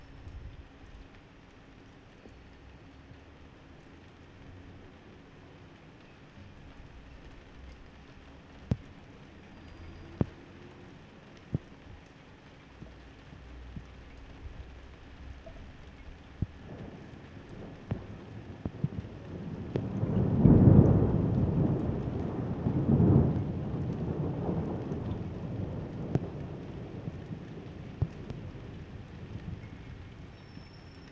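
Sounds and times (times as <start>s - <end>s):
thunder: 16.4s - 31.1s.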